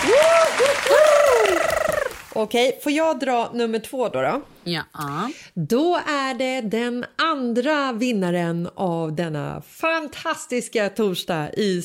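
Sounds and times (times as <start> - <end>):
high whooping cheers: 0.0 - 2.3
audience applause: 0.0 - 2.4
speech: 2.4 - 11.8.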